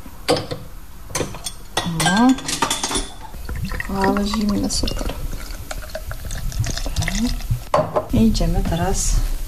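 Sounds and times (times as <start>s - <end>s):
speech: 2.1s - 2.6s, 3.9s - 5.1s, 8.2s - 9.3s
cold wheat beer pouring into a glass: 3.1s - 7.7s.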